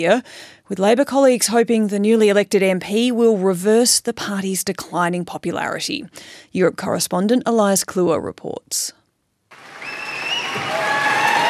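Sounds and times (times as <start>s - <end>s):
speech: 0.0s - 9.0s
crowd applauding outside the Prime Minister's residence: 9.5s - 11.4s
thin whistling tones: 9.8s - 11.4s.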